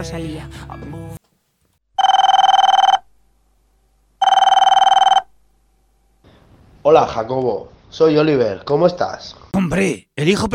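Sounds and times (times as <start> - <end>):
speech: 0.0 - 1.2, 6.8 - 10.5
telephone ringing: 2.0 - 3.1, 4.2 - 5.3.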